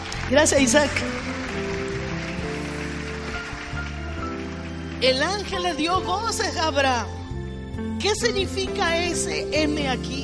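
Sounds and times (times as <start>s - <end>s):
crowd applauding: 0.0s - 6.6s
speech: 0.3s - 1.4s, 5.0s - 7.2s, 8.0s - 10.2s.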